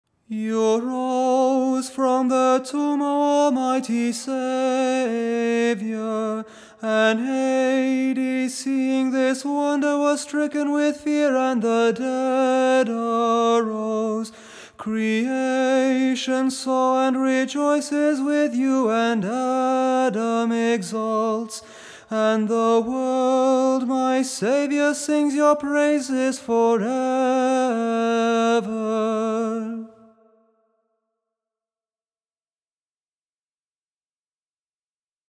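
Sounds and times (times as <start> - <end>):
tone six kontakion chant: 0.3 - 30.3.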